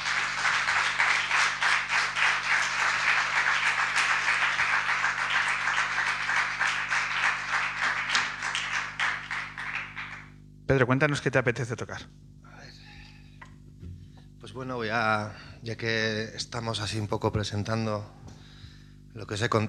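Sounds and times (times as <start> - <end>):
audience applause: 0.0 - 10.4
speech: 10.7 - 12.3, 14.6 - 18.2, 19.2 - 19.6.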